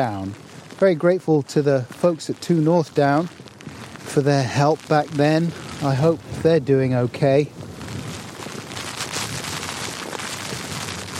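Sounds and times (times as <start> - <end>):
speech: 0.0 - 3.4, 4.1 - 7.6
rain: 0.0 - 11.1
wind: 0.0 - 11.1.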